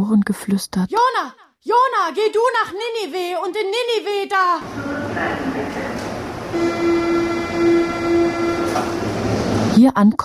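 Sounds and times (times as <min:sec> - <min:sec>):
speech: 0:00.1 - 0:07.0, 0:09.8 - 0:10.2
steady pitched whine or horn tone: 0:04.6 - 0:09.8
subway train rumbling into a station: 0:04.6 - 0:10.0.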